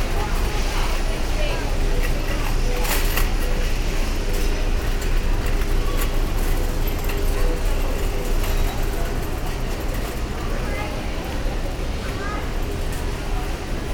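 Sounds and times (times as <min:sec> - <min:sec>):
supermarket ambience in Brazil: 0:00.0 - 0:13.9.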